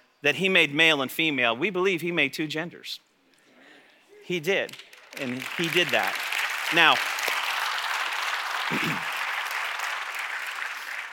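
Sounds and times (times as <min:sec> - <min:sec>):
speech: 0:00.2 - 0:03.1, 0:04.3 - 0:07.2
church congregation applauding during a pastor's sermon: 0:04.7 - 0:11.1.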